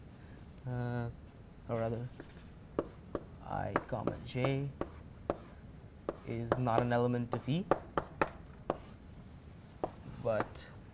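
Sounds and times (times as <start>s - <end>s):
speech: 0.7s - 2.4s, 3.5s - 4.8s, 6.3s - 8.1s, 10.3s - 10.8s
writing by hand with soft scratchy strokes: 1.8s - 9.0s, 9.8s - 10.8s.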